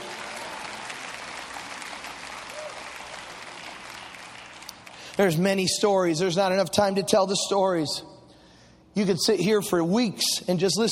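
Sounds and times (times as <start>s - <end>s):
audience applauding: 0.0s - 5.2s
speech: 5.2s - 8.1s, 9.0s - 10.9s.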